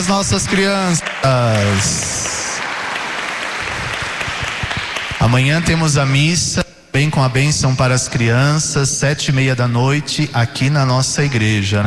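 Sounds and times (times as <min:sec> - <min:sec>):
speech: 0:00.0 - 0:02.2, 0:05.2 - 0:11.8
audience in a church clapping for children: 0:00.0 - 0:06.3.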